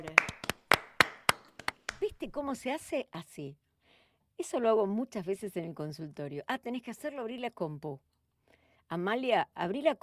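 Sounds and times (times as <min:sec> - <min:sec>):
hand clapping applause: 0:00.0 - 0:02.0
speech: 0:02.2 - 0:03.6, 0:04.4 - 0:08.1, 0:08.9 - 0:10.0.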